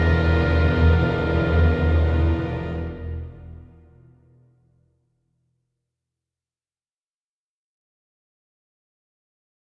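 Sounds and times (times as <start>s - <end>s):
background music: 0.0s - 4.2s.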